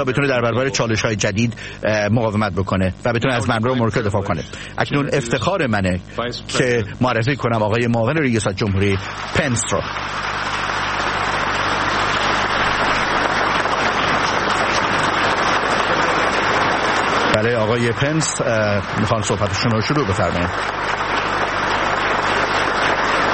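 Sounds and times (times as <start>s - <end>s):
audience applause: 0.0s - 1.2s, 8.2s - 23.3s
speech: 0.0s - 10.8s, 17.4s - 21.0s.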